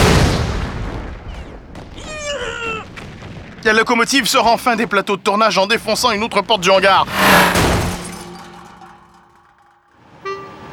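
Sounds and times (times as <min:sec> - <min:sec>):
bombs exploding: 0:00.0 - 0:02.3, 0:07.0 - 0:08.8
speech: 0:03.6 - 0:07.6.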